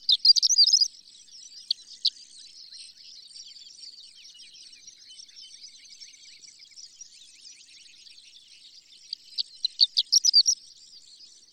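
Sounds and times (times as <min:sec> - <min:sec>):
horned lark twittering: 0:00.0 - 0:00.9, 0:09.1 - 0:10.6.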